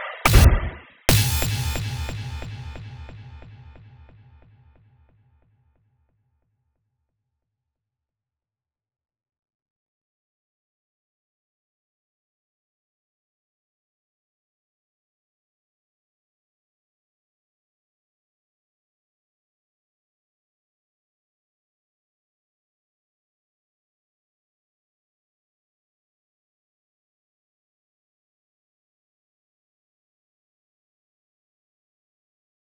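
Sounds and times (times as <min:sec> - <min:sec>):
kick drum: 0:00.3 - 0:04.8.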